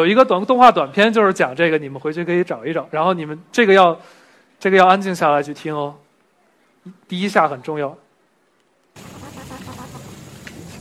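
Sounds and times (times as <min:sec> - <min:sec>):
speech: 0:00.0 - 0:06.0, 0:06.8 - 0:08.0
leaf-cutter ants cooing: 0:09.0 - 0:10.7.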